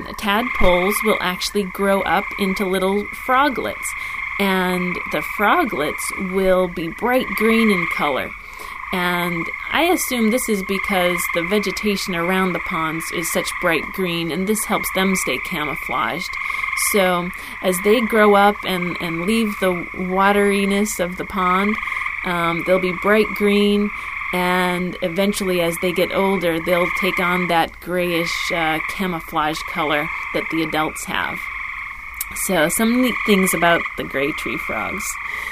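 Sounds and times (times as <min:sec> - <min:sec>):
gray tree frogs calling: 0:00.0 - 0:35.4.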